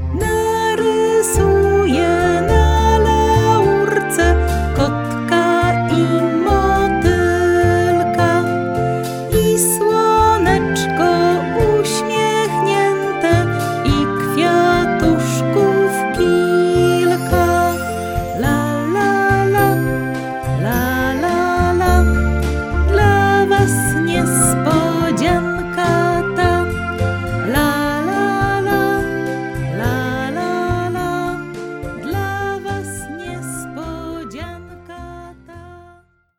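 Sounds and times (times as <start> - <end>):
vocals: 0.1 - 36.1.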